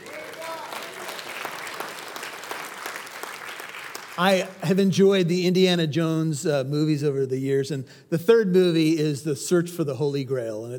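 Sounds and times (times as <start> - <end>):
audience clapping: 0.0 - 4.9
speech: 4.2 - 10.7.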